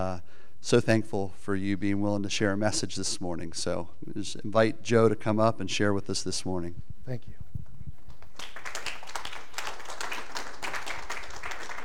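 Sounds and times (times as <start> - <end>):
speech: 0.0 - 7.4
audience clapping: 8.1 - 11.8.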